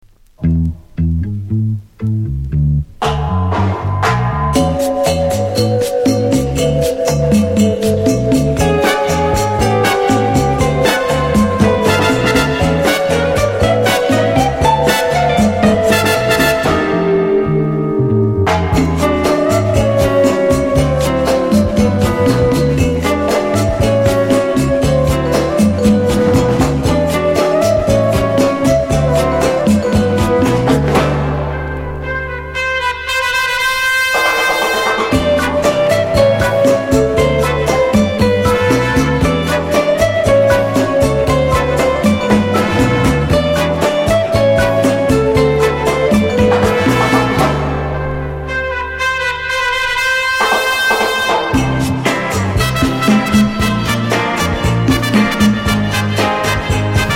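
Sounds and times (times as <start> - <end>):
Latin music: 0.2 - 57.1.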